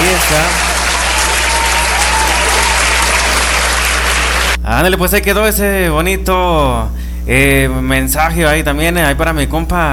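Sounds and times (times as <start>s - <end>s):
loud applause: 0.0s - 4.6s
speech: 0.3s - 0.7s, 4.7s - 9.9s.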